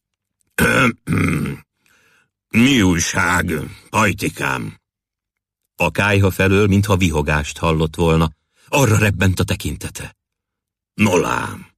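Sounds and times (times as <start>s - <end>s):
throat clearing: 0.6s - 1.7s
speech: 0.8s - 1.7s, 2.5s - 4.8s, 5.8s - 10.2s, 11.0s - 11.7s.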